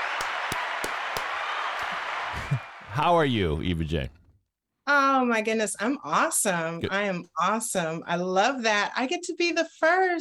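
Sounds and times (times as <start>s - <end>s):
round of applause: 0.0s - 3.1s
speech: 3.0s - 4.2s, 4.9s - 10.1s.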